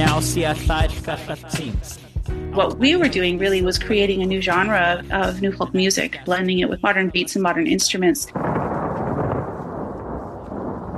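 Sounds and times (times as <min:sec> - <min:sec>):
speech: 0:00.2 - 0:08.5
recorded thunderstorm thunder rumble for a new-folk song: 0:03.1 - 0:10.9.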